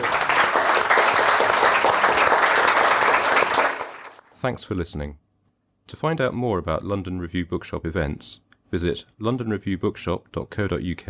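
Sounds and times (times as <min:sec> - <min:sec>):
audience applause: 0:00.0 - 0:04.2
speech: 0:04.4 - 0:05.2, 0:05.9 - 0:11.0.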